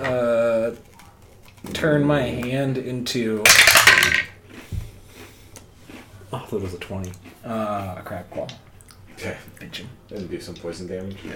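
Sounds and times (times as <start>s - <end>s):
speech: 1.7s - 4.2s, 6.5s - 11.3s
dice being rolled: 3.4s - 4.3s.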